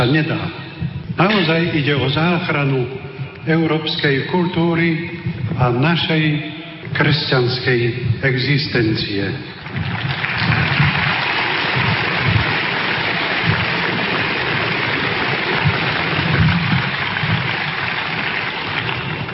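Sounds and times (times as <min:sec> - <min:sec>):
speech: 0:00.0 - 0:00.6, 0:01.2 - 0:09.8
audience applause: 0:09.6 - 0:19.3.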